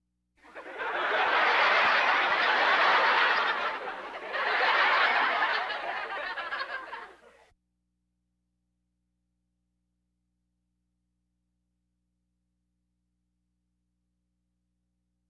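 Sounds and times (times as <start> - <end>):
audience laughter: 0.4 - 7.4.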